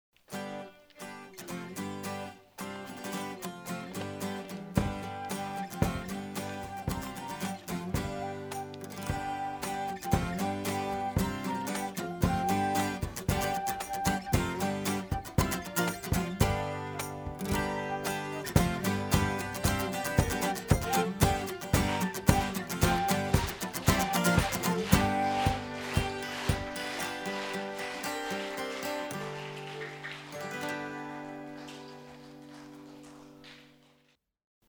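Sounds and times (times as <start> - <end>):
instrumental music: 0.4 - 33.5.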